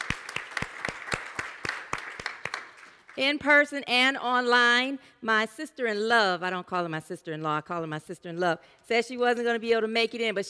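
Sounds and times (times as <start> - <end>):
audience applause welcoming visitors at a Friends and Family Day gathering: 0.0 - 3.2
speech: 3.2 - 10.4.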